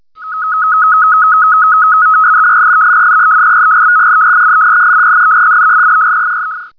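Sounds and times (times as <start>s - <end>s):
ASCII-110 shortwave digital mode signal: 0.2s - 6.7s.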